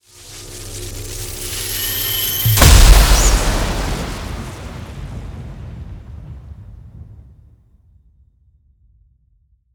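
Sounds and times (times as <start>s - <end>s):
thunder magic spell effect: 0.9s - 7.3s.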